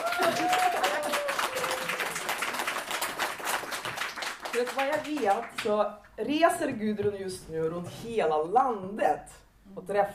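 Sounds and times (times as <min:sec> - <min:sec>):
crowd applauding: 0:00.0 - 0:05.6
speech: 0:04.6 - 0:10.1.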